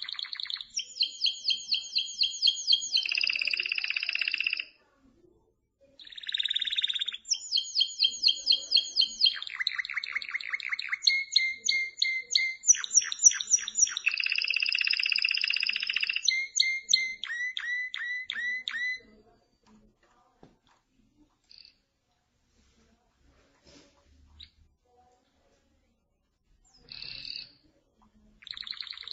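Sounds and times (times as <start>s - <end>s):
canary singing: 0.0s - 4.8s, 6.0s - 19.4s, 26.6s - 29.1s.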